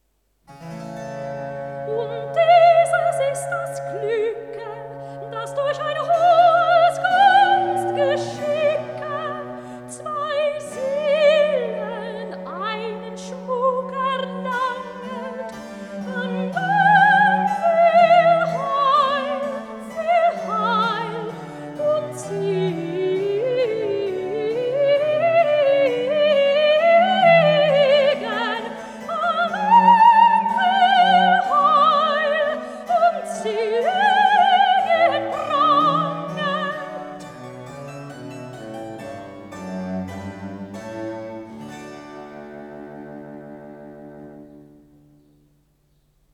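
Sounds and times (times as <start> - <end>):
wedding cantata recitative singing: 1.8 - 37.7.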